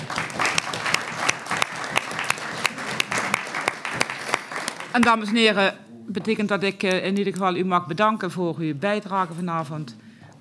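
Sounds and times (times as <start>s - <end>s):
council applauding: 0.0s - 5.4s
speech: 5.0s - 10.0s.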